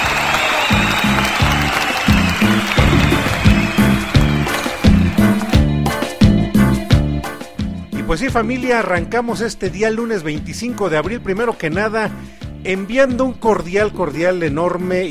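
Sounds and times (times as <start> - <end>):
audience applause: 0.0 - 6.2
speech: 8.2 - 15.0.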